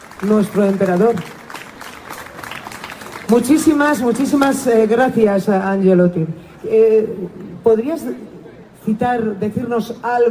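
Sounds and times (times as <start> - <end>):
audience applause at a public tribute event: 0.0 - 3.7
speech: 0.2 - 1.4, 3.3 - 10.3.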